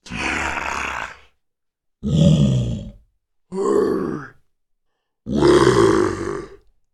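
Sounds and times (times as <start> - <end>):
zombie growls: 0.0 - 1.4, 2.0 - 4.4, 5.3 - 6.7.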